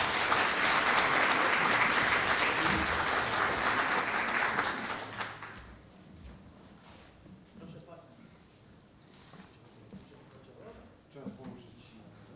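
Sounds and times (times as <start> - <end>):
audience applause: 0.0 - 5.7.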